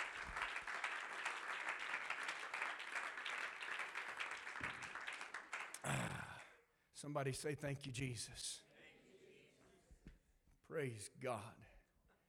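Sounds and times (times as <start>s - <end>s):
crowd clapping hands to the Lord: 0.0s - 6.5s
speech: 7.0s - 8.7s, 10.7s - 11.7s.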